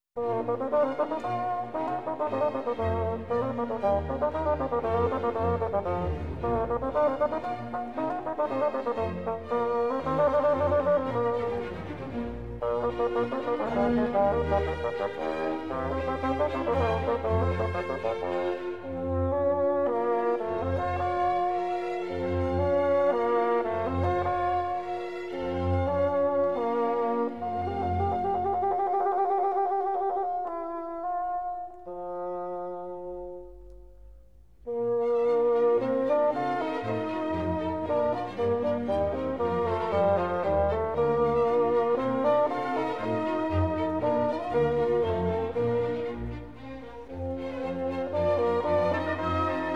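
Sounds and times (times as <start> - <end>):
bassoon concerto for bassoon and orchestra: 0.0 - 49.7.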